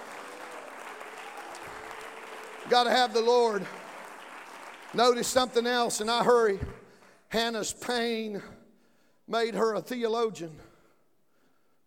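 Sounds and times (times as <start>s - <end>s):
audience clapping hands: 0.0s - 7.9s
speech: 2.6s - 3.8s, 4.9s - 8.6s, 9.3s - 10.7s.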